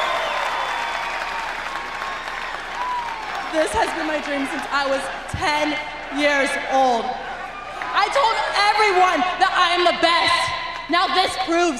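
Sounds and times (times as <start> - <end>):
crowd cheering and applauding: 0.0 - 6.2
speech: 3.6 - 7.2, 7.9 - 11.7.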